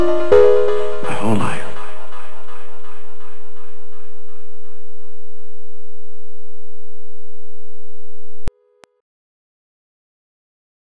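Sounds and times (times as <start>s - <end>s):
music interlude: 0.0s - 2.1s.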